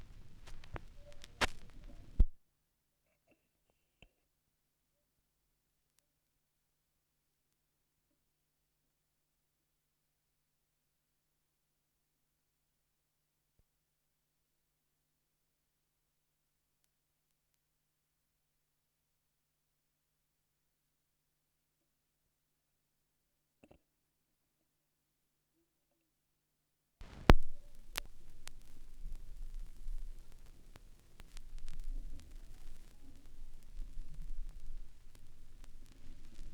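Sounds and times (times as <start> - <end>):
vinyl record noise: 0.0 - 2.4, 27.0 - 36.5.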